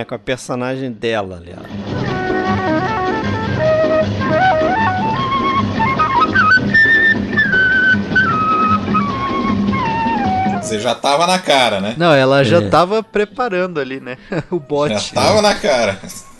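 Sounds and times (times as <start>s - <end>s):
speech: 0.0s - 2.1s, 10.7s - 16.3s
snake charmer style flute music: 1.7s - 11.7s, 13.7s - 16.3s
laughter: 14.0s - 16.3s.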